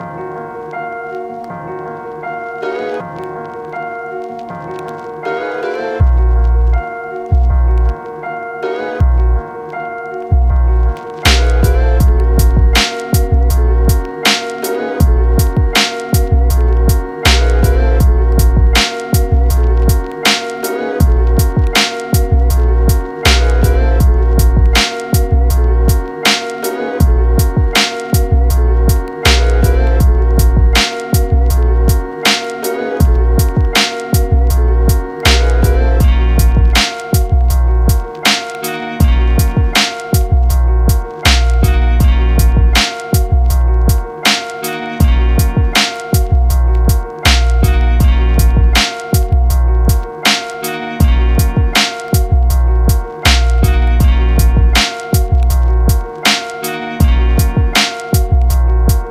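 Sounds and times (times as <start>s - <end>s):
instrumental remix: 0.0s - 59.0s.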